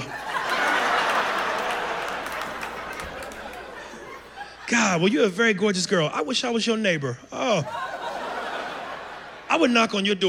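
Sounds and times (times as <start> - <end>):
laughter: 0.0 - 6.0, 7.4 - 10.0
audience member clapping aggressively: 1.4 - 3.8
speech: 4.7 - 7.9, 9.6 - 10.2.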